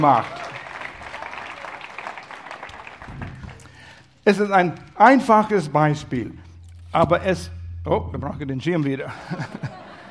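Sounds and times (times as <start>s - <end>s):
speech: 0.0s - 0.4s, 4.2s - 9.8s
audience applause: 0.0s - 3.9s
laughter: 9.1s - 10.0s.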